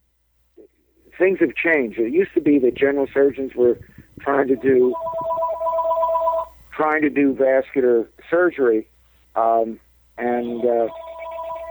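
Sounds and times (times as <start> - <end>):
speech: 1.2 - 5.2, 6.8 - 11.0
telephone two-tone electronic ring: 1.5 - 6.6, 10.2 - 11.7.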